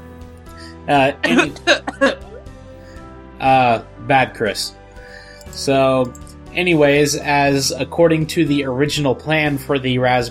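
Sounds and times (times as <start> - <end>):
speech: 0.8 - 2.2, 3.4 - 4.8, 5.5 - 10.3
hoarse coughs away from the microphone: 1.2 - 2.2
laughter: 1.2 - 2.5.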